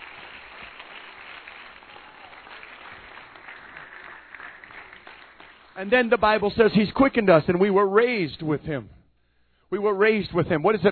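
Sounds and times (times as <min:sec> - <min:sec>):
audience clapping hands: 0:00.0 - 0:06.3
speech: 0:05.8 - 0:09.0, 0:09.7 - 0:10.9.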